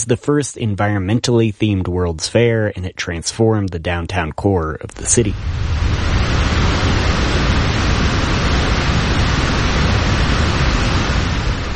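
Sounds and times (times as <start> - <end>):
speech: 0.0 - 5.9
Spokane River rushing waterfall: 5.2 - 11.7.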